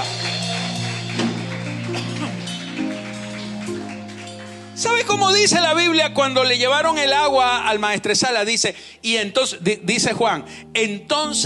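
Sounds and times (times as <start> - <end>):
audience applause: 0.0 - 5.8
speech: 5.0 - 11.4.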